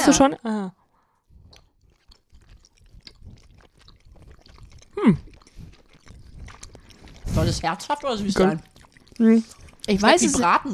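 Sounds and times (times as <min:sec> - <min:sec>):
speech: 0:00.0 - 0:00.8, 0:05.0 - 0:05.3, 0:07.3 - 0:10.7
chewing food: 0:00.8 - 0:10.7
biting into food: 0:01.4 - 0:07.4.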